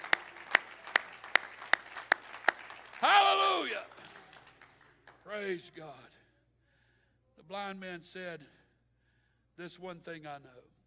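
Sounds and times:
audience clapping hands: 0.0s - 5.6s
speech: 3.0s - 4.0s, 5.3s - 6.2s, 7.5s - 8.6s, 9.6s - 10.7s.

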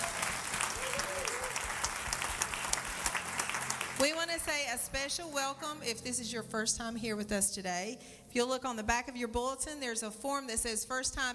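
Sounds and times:
church congregation applauding: 0.0s - 4.5s
speech: 4.4s - 11.3s.

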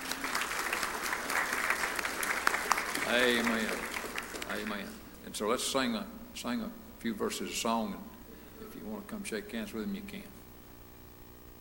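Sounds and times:
church audience applause: 0.0s - 5.0s
speech: 3.1s - 3.8s, 4.5s - 8.1s, 8.8s - 10.4s.

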